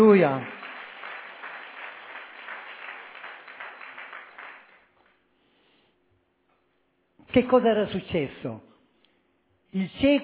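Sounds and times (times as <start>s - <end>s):
speech: 0.0s - 0.6s, 7.3s - 8.7s, 9.7s - 10.2s
audience applause: 0.0s - 5.1s.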